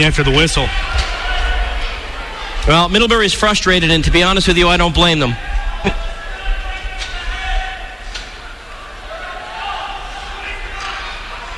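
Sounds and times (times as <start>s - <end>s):
speech: 0.0s - 1.2s, 2.6s - 6.0s
yelling from benches and crowd at hockey: 0.2s - 2.6s, 5.2s - 11.5s.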